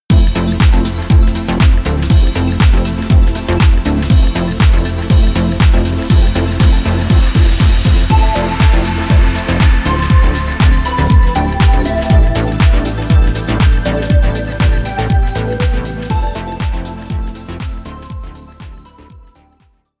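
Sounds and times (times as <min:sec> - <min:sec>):
synth: 0:00.1 - 0:19.3.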